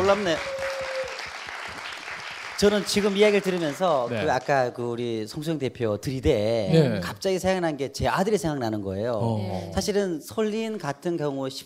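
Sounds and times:
audience applause: 0.0 - 4.5
speech: 0.1 - 0.6, 2.6 - 11.6.

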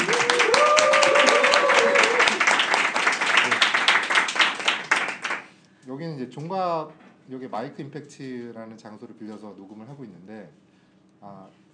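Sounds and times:
person cheering: 0.0 - 2.6
audience applause: 0.0 - 5.5
speech: 6.4 - 10.6, 11.2 - 11.6.

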